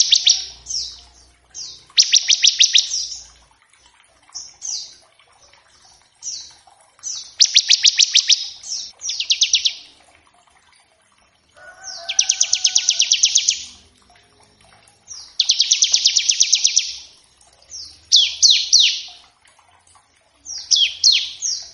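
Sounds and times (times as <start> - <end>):
bar-winged prinia singing buzzy trills: 0.0 - 3.5, 4.3 - 10.0, 11.6 - 19.3.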